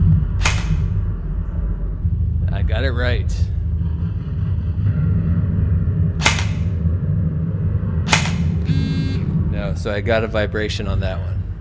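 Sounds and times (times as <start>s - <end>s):
low steady background: 0.0s - 11.5s
Mach M4 assault rifle firing a single shot: 0.4s - 1.0s, 6.2s - 6.7s, 8.1s - 8.6s
speech: 2.7s - 3.5s, 9.8s - 11.4s.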